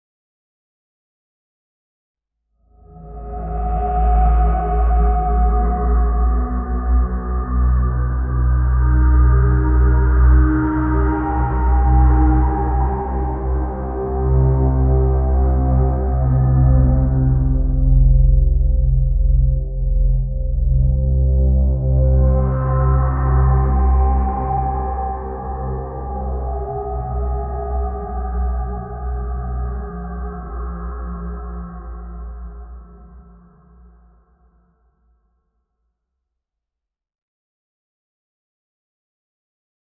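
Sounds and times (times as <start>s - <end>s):
atmospheric horror story background: 2.7s - 34.4s.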